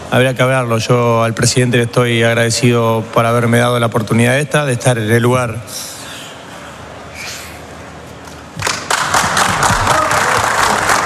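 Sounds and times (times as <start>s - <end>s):
speech: 0.1s - 5.9s
applause in a press room: 8.6s - 11.0s.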